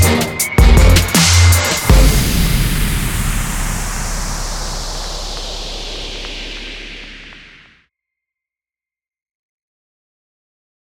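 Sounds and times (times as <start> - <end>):
trap beat: 0.0 - 7.7.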